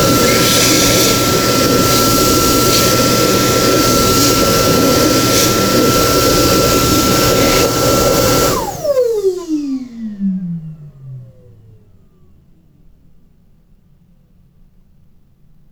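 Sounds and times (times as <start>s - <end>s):
turbine: 0.0s - 12.8s.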